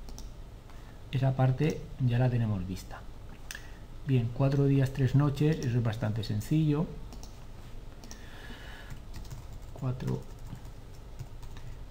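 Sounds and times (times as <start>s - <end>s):
speech: 1.1s - 3.1s, 4.0s - 7.0s, 9.8s - 10.3s
rapid computer keyboard typing: 8.9s - 11.8s.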